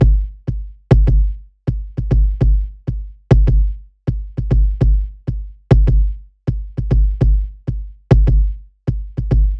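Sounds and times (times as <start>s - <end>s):
kick drum: 0.0s - 9.5s.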